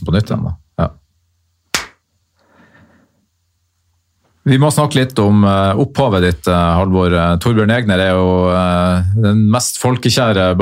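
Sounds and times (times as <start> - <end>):
speech: 0.1 - 1.0, 4.5 - 10.6
hand clap marking a recording retake: 1.7 - 2.0.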